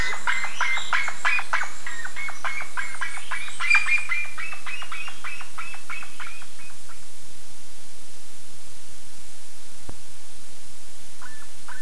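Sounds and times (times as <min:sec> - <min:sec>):
bird calls: 0:00.0 - 0:07.1, 0:11.2 - 0:11.8.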